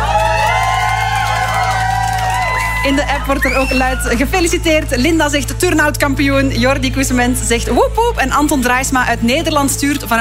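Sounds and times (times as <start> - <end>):
audience applause: 0.0 - 4.1
speech: 2.8 - 10.1.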